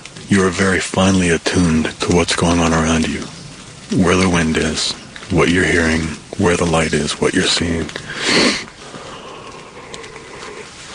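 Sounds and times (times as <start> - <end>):
speech: 0.3 - 8.7
person yawning: 8.1 - 10.7.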